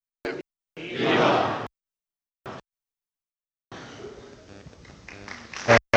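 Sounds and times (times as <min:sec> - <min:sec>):
church crowd shouting vivas: 0:00.8 - 0:01.7
church crowd applauding: 0:05.0 - 0:05.9.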